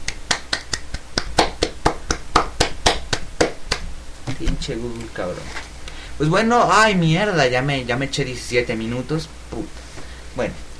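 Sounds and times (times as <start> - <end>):
hands clapping: 0.0 - 3.9
speech: 4.4 - 9.8, 10.4 - 10.6.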